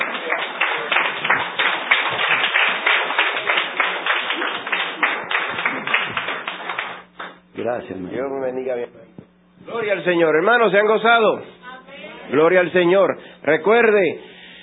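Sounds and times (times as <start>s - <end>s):
audience applauding loudly: 0.0s - 7.4s
speech: 7.7s - 9.0s, 9.6s - 11.6s, 12.3s - 14.3s.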